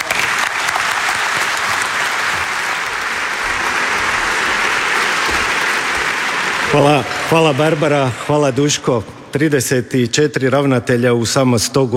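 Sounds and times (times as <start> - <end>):
audience applause at a Croatian Radiotelevision event greeting the director general: 0.0 - 8.9
speech: 6.8 - 11.9.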